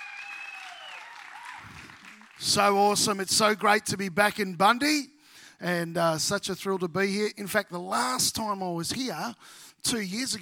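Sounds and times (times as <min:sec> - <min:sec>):
audience round of applause: 0:00.0 - 0:02.5
speech: 0:02.4 - 0:10.4.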